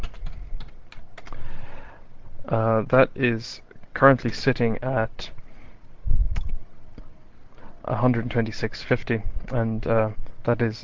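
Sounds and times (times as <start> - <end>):
typing on a computer keyboard: 0.0 - 1.4
speech: 2.5 - 5.4, 7.9 - 10.8.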